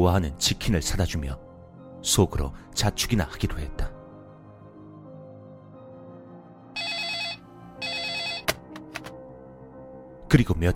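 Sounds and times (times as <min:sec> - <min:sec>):
speech: 0:00.0 - 0:03.9, 0:10.3 - 0:10.7
telephone ringing: 0:06.8 - 0:08.6.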